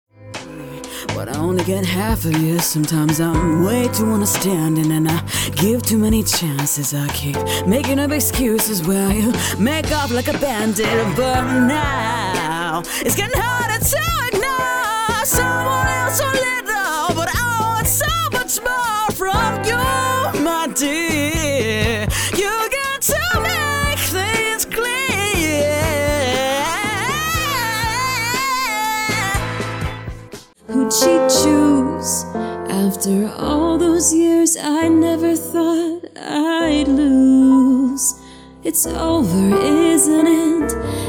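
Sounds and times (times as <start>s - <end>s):
Asian American voice actress singing: 0.9s - 41.0s.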